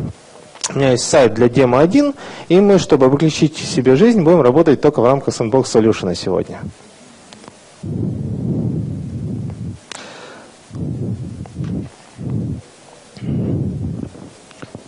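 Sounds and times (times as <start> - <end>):
speech: 0.7 - 6.9
loud breathing into the microphone: 2.2 - 2.5, 7.8 - 14.8.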